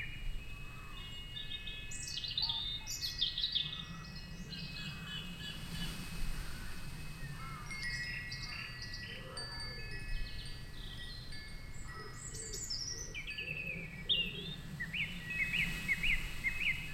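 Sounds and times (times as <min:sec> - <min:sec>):
wind chimes in a forest: 0:00.0 - 0:16.9.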